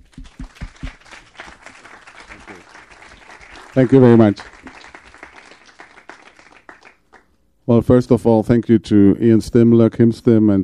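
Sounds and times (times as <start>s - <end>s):
audience applause at a Film Forum film screening: 0.0s - 7.3s
speech: 3.8s - 4.5s, 7.8s - 10.6s.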